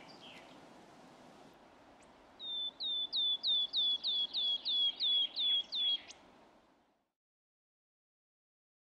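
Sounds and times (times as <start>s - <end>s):
Eurasian nuthatch calling: 2.4s - 6.2s.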